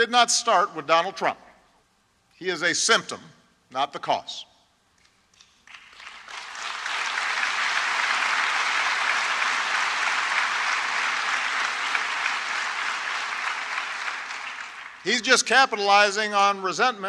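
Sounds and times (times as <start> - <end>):
speech: 0.0 - 1.5, 2.4 - 4.5, 15.0 - 17.0
crowd cheering and applauding: 5.4 - 15.3.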